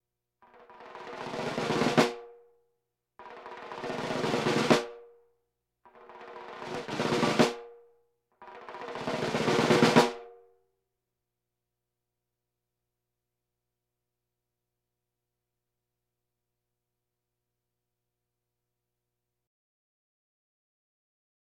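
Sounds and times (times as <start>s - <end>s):
drums: 0.4s - 2.4s, 3.2s - 5.2s, 5.9s - 7.8s, 8.4s - 10.4s
bongos: 0.6s - 2.4s, 3.2s - 5.1s, 5.9s - 7.8s, 8.4s - 10.4s.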